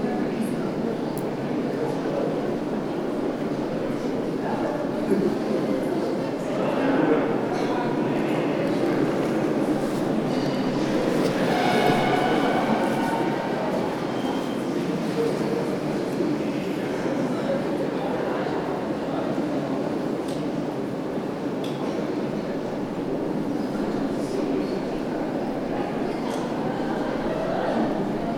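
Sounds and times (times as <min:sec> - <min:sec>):
underground metro hallway passage ambience: 0:00.0 - 0:28.3.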